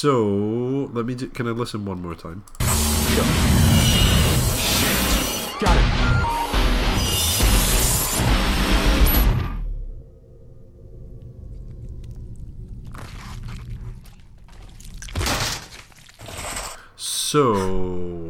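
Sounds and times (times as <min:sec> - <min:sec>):
speech: 0:00.0 - 0:03.7, 0:17.3 - 0:18.0
circular saw cutting: 0:02.6 - 0:09.6.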